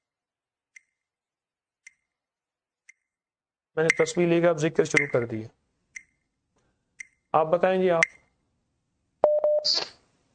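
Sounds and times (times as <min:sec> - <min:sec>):
speech: 0:03.8 - 0:05.6, 0:07.3 - 0:08.2, 0:09.6 - 0:09.8
telephone keypad beeps: 0:09.2 - 0:09.9.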